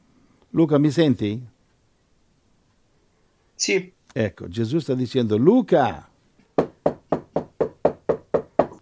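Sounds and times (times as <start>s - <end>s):
speech: 0.5s - 1.5s, 3.6s - 6.1s
knocking on a door: 6.6s - 8.7s.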